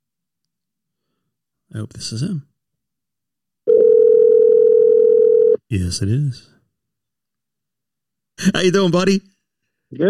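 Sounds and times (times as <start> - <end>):
speech: 1.7 - 2.5, 5.7 - 6.5, 8.4 - 9.3
telephone line tone: 3.7 - 5.6.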